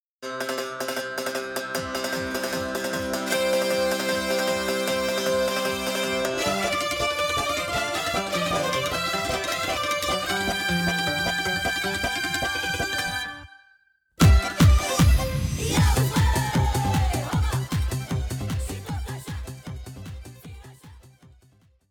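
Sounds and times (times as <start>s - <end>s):
folk music: 0.5s - 13.6s, 14.2s - 20.9s.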